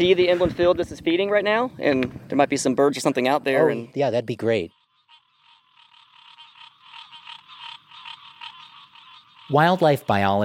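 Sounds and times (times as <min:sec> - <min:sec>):
speech: 0:00.0 - 0:04.8, 0:09.5 - 0:10.4
green tree frogs chorusing: 0:03.1 - 0:10.4.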